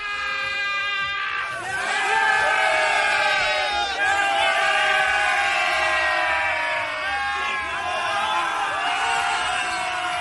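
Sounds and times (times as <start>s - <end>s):
Liverpool footballers shouting in locker room: 0.0s - 10.1s.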